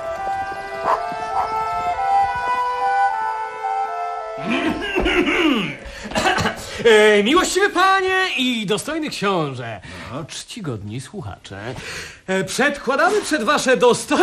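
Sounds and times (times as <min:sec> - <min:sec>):
two small dogs of an unknown breed yelping and barking: 0:00.8 - 0:01.6
two small dogs of an unknown breed whining and howling: 0:00.8 - 0:03.5
laughter: 0:04.4 - 0:06.9
speech: 0:06.8 - 0:14.2.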